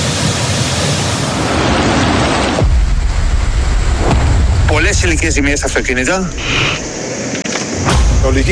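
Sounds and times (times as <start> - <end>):
rushing floodwater surging past: 0.0 - 7.4
heavy rain: 0.0 - 8.5
speech: 4.8 - 6.9, 8.3 - 8.5.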